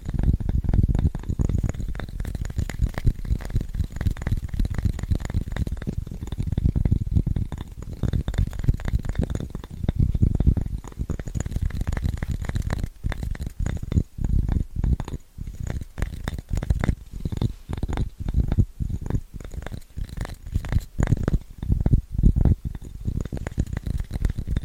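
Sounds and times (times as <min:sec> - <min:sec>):
fast scratchy tapping: 0:00.0 - 0:24.6.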